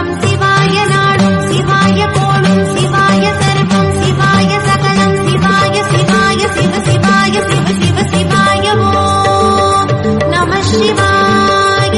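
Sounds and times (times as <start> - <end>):
Tamil devotional song ringtone: 0.2 - 11.9.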